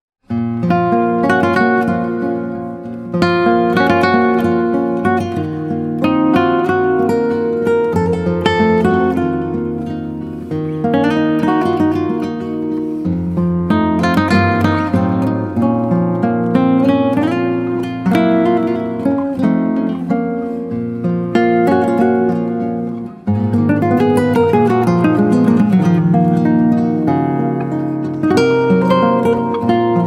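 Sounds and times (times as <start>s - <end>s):
guitar: 0.2s - 30.0s.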